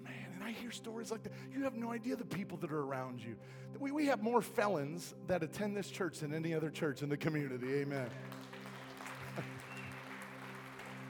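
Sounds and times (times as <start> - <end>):
speech: 0.5 - 8.5
audience clapping: 8.0 - 11.0.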